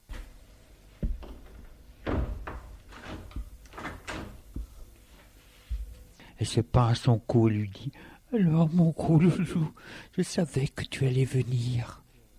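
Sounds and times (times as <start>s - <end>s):
door closing: 1.0s - 4.8s
speech: 6.4s - 12.0s.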